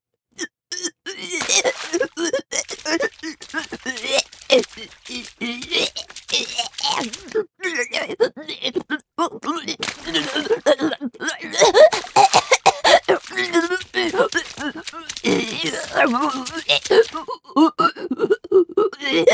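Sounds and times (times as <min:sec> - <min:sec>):
vomiting sound effect: 0:00.4 - 0:19.3.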